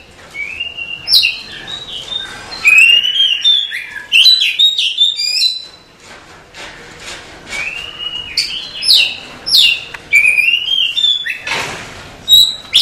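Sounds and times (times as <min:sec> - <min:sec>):
nightingale singing: 0:00.4 - 0:05.7, 0:07.6 - 0:11.5, 0:12.3 - 0:12.8.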